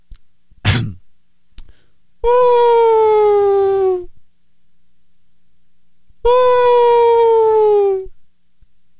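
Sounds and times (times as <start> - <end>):
throat clearing: 0.7 - 1.0
voice imitating a whale call: 2.2 - 4.1, 6.2 - 8.1.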